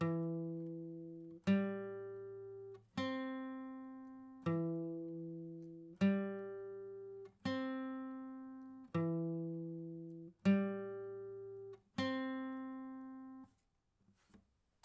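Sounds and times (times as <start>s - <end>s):
acoustic music pattern: 0.0s - 13.4s.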